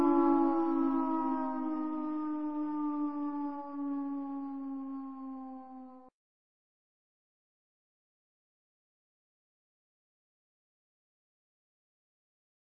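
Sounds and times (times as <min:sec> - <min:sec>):
war siren: 0:00.0 - 0:06.1.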